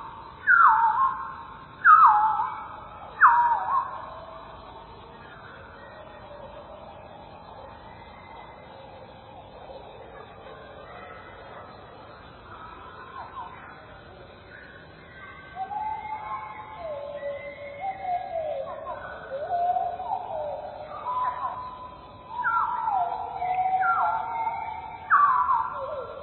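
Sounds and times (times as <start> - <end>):
chiffchaff calls and song slowed four times and lowered two octaves: 0.0 - 26.2.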